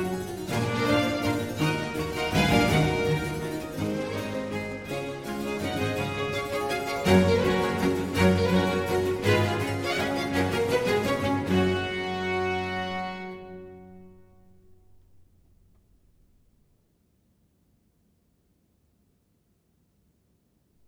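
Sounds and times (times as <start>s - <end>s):
string orchestra playing a presto concerto in G major: 0.0s - 15.0s.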